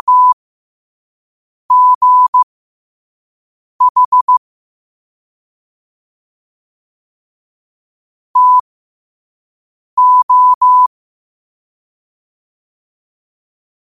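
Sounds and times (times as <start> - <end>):
morse code at 5 wpm: 0.0 - 0.4, 1.7 - 2.4, 3.8 - 4.4, 8.4 - 8.6, 10.0 - 10.9.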